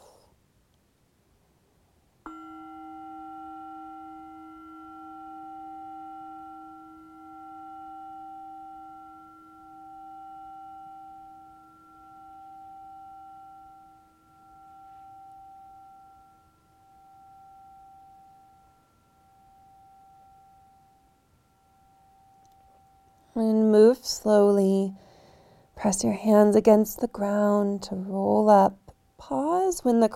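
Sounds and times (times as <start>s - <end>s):
meditation bell ringing: 2.3s - 23.9s
speech: 23.4s - 25.0s, 25.8s - 30.1s.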